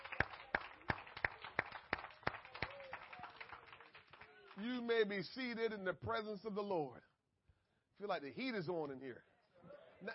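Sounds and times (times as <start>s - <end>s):
audience clapping hands: 0.0s - 5.2s
speech: 4.6s - 7.1s, 8.0s - 9.3s.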